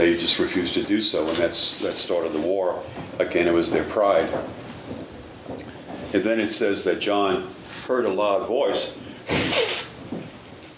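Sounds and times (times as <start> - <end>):
speech: 0.1 - 5.0, 6.1 - 9.8
person blowing nose: 9.3 - 10.0.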